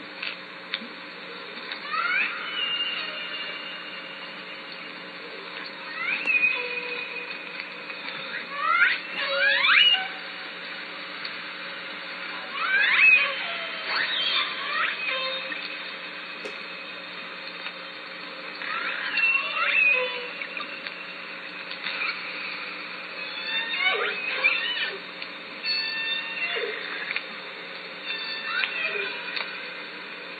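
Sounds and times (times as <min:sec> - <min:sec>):
killer whale harmonic squealing calls: 0:01.8 - 0:03.9, 0:05.9 - 0:07.2, 0:08.3 - 0:10.2, 0:12.5 - 0:15.7, 0:18.6 - 0:20.7, 0:23.2 - 0:25.0, 0:25.6 - 0:27.2, 0:28.0 - 0:29.4.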